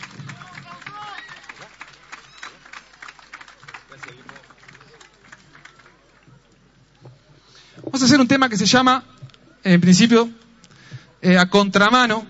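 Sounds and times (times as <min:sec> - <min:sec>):
audience applause at a bicentennial music event in Plaza Rodó, Durazno: 0:00.0 - 0:06.6
crowd chatter: 0:00.0 - 0:08.3, 0:09.0 - 0:11.2
speech: 0:08.0 - 0:10.4, 0:11.2 - 0:12.2.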